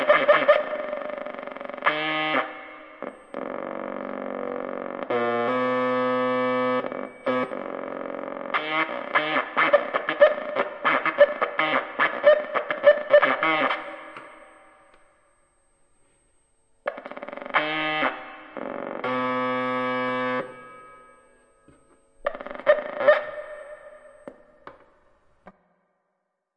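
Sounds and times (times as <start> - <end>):
farty weird synth through amp and reverb: 0.0 - 15.3, 16.8 - 24.8.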